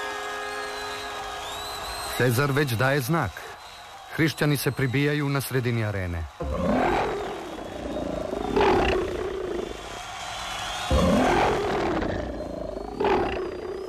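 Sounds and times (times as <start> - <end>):
speech: 2.2 - 3.6, 4.2 - 6.8
lions roaring in an arena: 6.4 - 9.7, 10.9 - 13.8.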